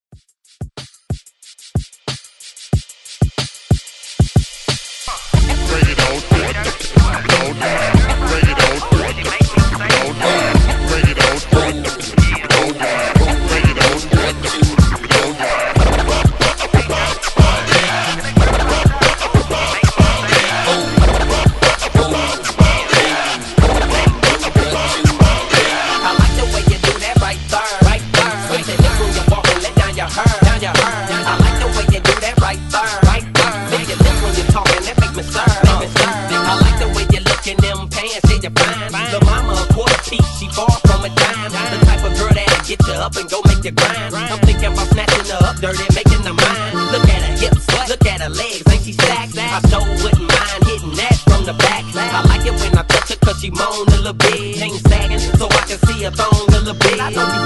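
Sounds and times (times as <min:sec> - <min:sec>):
turntable scratching at 92 BPM: 0:00.4 - 0:57.4.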